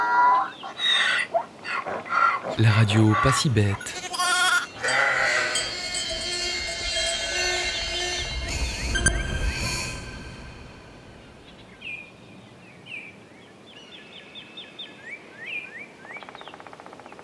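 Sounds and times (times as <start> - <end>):
donkey braying: 0.0 - 8.7
speech: 2.6 - 4.0
short high squeaks: 3.8 - 11.3.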